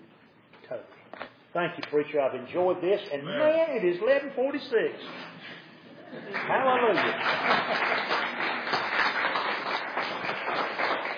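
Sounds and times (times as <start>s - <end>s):
speech: 0.7s - 8.2s
audience clapping: 6.3s - 11.1s.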